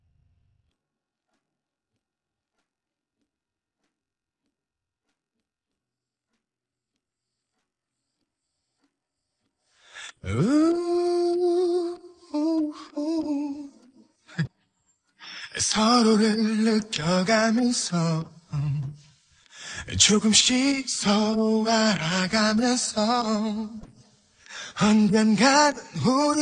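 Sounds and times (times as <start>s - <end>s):
person singing: 10.0s - 14.5s, 15.5s - 19.0s, 19.8s - 23.9s, 24.6s - 26.3s.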